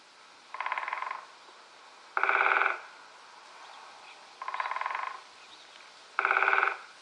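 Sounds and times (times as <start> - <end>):
woodpecker hammering on a tree: 0.5 - 1.2, 2.2 - 2.9, 4.4 - 5.2, 6.2 - 6.8.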